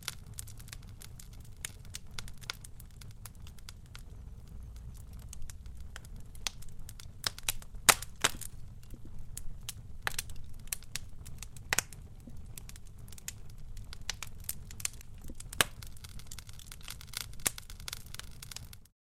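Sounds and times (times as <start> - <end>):
fire crackling and burning: 0.0 - 18.9.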